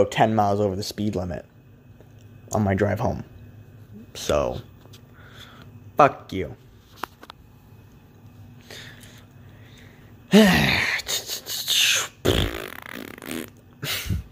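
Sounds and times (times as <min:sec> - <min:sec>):
speech: 0:00.0 - 0:01.5, 0:02.5 - 0:03.3, 0:04.2 - 0:04.7, 0:06.0 - 0:06.6, 0:10.3 - 0:10.9
fart noise: 0:12.2 - 0:14.2.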